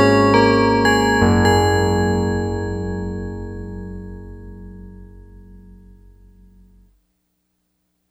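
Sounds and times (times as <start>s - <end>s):
Yamaha DX100 pianobells factory patch: 0.0s - 6.4s.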